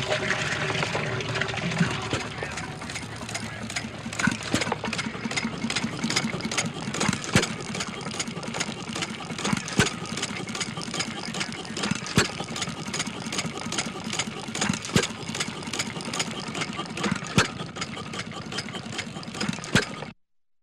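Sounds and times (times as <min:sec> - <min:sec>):
old petrol pump slowly pumping water: 0:00.0 - 0:20.2.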